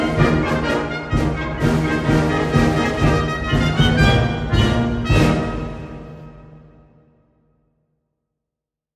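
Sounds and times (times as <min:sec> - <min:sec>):
solo trumpet: 0:00.0 - 0:06.9.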